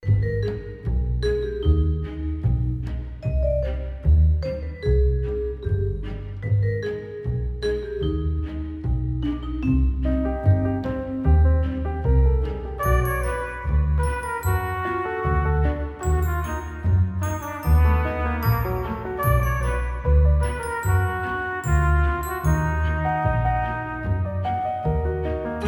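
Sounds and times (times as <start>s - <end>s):
theme music: 0.3s - 25.6s.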